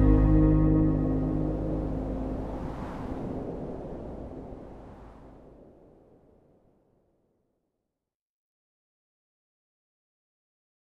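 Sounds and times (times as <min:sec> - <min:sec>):
synthesizer: 0:00.0 - 0:02.6.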